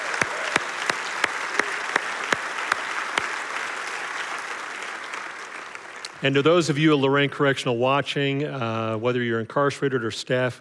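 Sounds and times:
audience clapping in unison to an even beat: 0.0 - 6.2
audience applause: 0.0 - 6.4
speech: 6.2 - 10.5.

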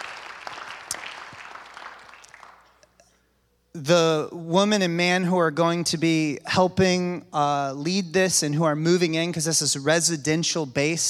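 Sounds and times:
audience applause: 0.0 - 2.8
speech: 3.8 - 11.0.

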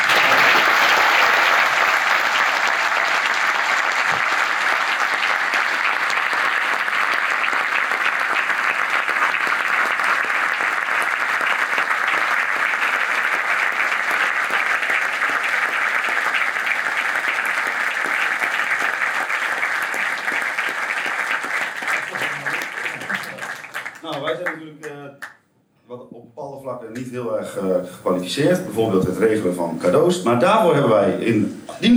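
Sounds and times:
audience applause: 0.0 - 24.7
speech: 27.5 - 31.9.

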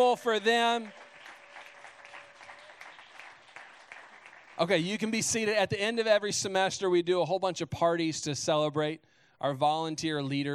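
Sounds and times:
speech: 0.0 - 1.0, 4.6 - 10.5
crowd clapping: 0.0 - 5.7.

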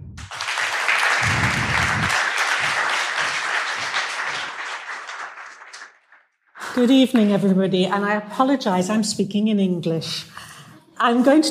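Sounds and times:
audience applause: 0.2 - 6.2
low thumps: 1.2 - 2.8
speech: 6.8 - 10.4, 11.0 - 11.4.

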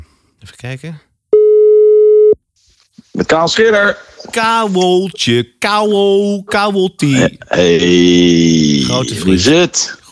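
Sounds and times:
speech: 0.4 - 1.1, 3.2 - 10.1
telephone ringback tone on outgoing call: 1.4 - 2.4.

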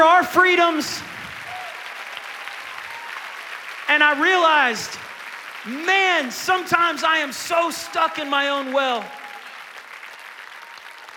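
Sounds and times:
crowd applauding: 0.0 - 11.1
speech: 0.2 - 1.2, 3.9 - 9.2
cheering and whoops: 1.3 - 3.6, 7.9 - 11.1.

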